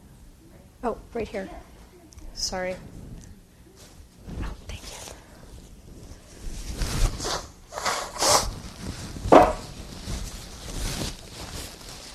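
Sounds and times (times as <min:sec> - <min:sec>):
speech: 0:00.8 - 0:01.7, 0:02.4 - 0:03.0
tissue rustling: 0:03.0 - 0:12.1
person blowing nose into a tissue: 0:06.9 - 0:08.6.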